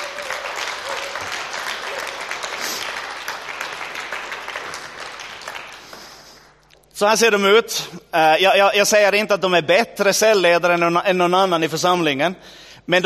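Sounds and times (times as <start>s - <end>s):
audience applause: 0.0s - 6.6s
speech: 7.0s - 13.0s.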